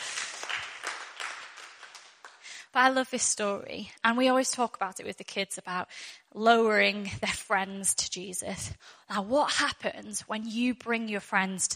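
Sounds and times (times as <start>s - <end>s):
audience clapping: 0.0s - 2.6s
speech: 2.8s - 11.7s.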